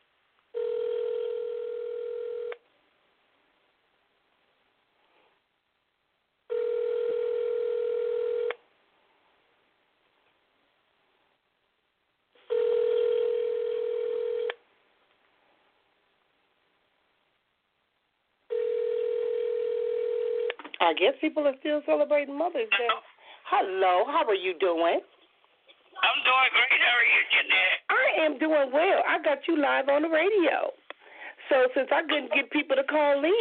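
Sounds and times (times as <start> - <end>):
telephone ringing tone on the line: 0.5 - 2.6, 6.5 - 8.6, 12.4 - 14.6, 18.5 - 20.5
speech: 20.8 - 25.1, 26.1 - 30.8, 31.5 - 33.3.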